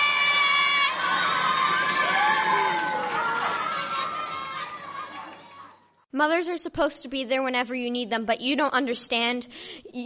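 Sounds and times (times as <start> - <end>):
audience applause and cheering: 0.0 - 6.0
speech: 6.2 - 10.0.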